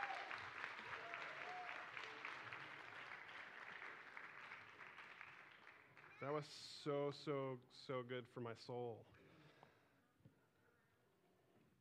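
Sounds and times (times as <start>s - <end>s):
crowd applauding a children's performance: 0.0s - 6.4s
speech: 6.2s - 9.2s.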